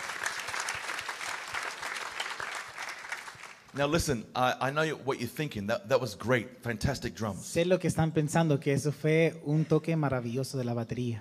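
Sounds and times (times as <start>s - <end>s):
crowd applauding: 0.0s - 4.0s
speech: 3.7s - 11.1s.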